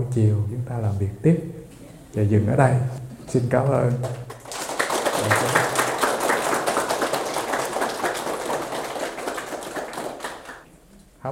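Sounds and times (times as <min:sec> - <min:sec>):
speech: 0:00.2 - 0:04.3
audience applause closing a Buddhist dharma talk: 0:04.1 - 0:10.7.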